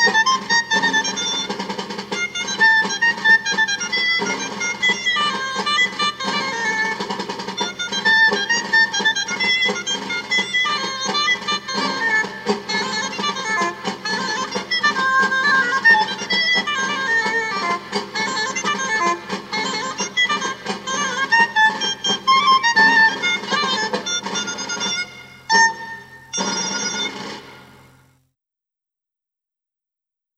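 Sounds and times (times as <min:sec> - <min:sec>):
jota folk dance music: 0:00.0 - 0:28.2.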